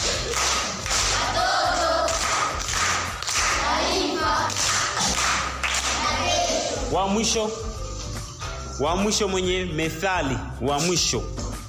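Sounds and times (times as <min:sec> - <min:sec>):
children at a school gathering clapping in a rhythmic group pattern: 0:00.0 - 0:06.6
young voices: 0:03.6 - 0:04.6, 0:05.8 - 0:06.9
speech: 0:06.9 - 0:07.7, 0:08.8 - 0:11.4.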